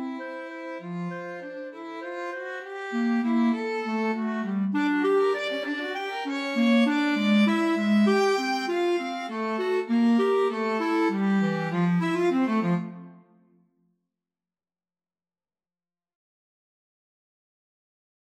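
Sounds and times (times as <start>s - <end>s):
waltz played as clarinet violin duet: 0.0s - 13.2s.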